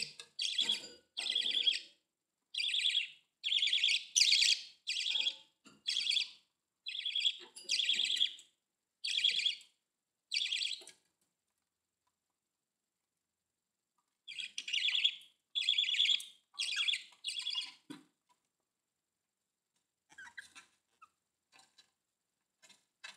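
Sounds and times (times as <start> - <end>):
budgerigar chirping: 0.4 - 1.9, 2.6 - 8.4, 9.0 - 9.6, 10.3 - 10.8, 14.3 - 17.8, 20.1 - 20.6.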